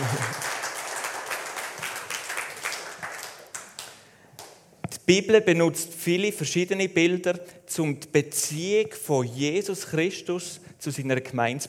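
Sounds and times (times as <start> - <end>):
audience applause: 0.0 - 4.0
speech: 5.1 - 11.6.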